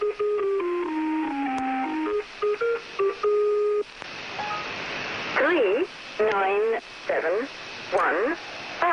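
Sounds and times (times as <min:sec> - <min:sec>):
stepped electronic tones of a shortwave radio station: 0:00.0 - 0:04.8
hissing shortwave radio static: 0:03.8 - 0:08.9.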